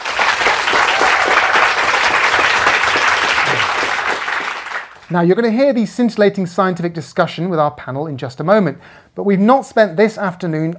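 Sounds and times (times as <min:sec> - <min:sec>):
audience applause welcoming a panel at a science event: 0:00.0 - 0:05.1
speech: 0:05.1 - 0:10.7.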